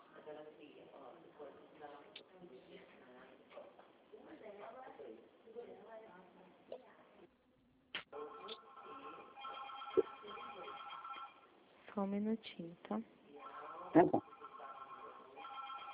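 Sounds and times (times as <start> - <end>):
telephone ringing with electronic tone: 8.2 - 11.5, 13.4 - 15.9
speech: 12.0 - 13.2, 14.0 - 14.3.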